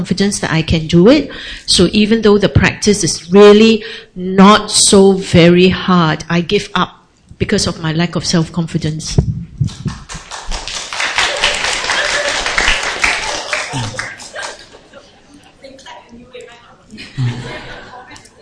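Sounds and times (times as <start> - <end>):
speech: 0.0 - 10.0
audience clapping: 9.6 - 15.0
laughter and voices: 11.1 - 18.3.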